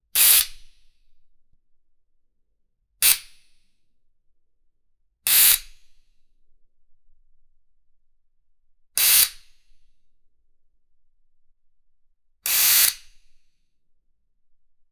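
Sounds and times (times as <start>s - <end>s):
air valve releasing pressure: 0.2s - 0.5s, 5.3s - 5.6s, 9.0s - 9.3s, 12.5s - 13.0s.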